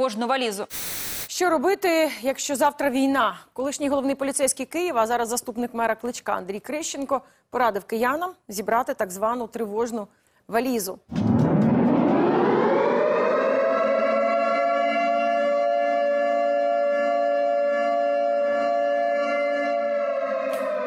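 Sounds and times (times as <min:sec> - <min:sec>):
speech: 0:00.0 - 0:11.3
civil defense air raid siren: 0:11.2 - 0:20.8.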